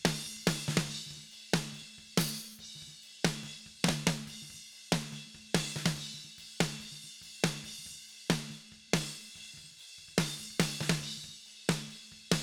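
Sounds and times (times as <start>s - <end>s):
snare drum: 0.0s - 2.6s, 3.2s - 7.7s, 8.3s - 9.3s, 10.1s - 11.1s, 11.7s - 12.4s.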